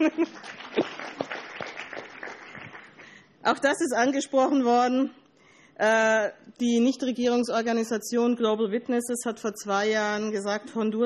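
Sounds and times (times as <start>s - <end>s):
speech: 0.0s - 0.6s, 3.5s - 5.2s, 5.8s - 11.0s
audience applause: 0.0s - 3.2s.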